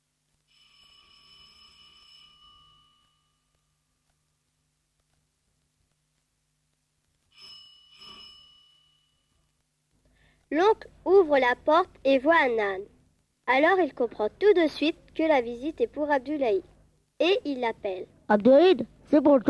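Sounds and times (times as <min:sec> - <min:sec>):
doorbell ringing: 0:00.5 - 0:04.0, 0:07.3 - 0:09.5
speech: 0:10.5 - 0:12.9, 0:13.5 - 0:19.4.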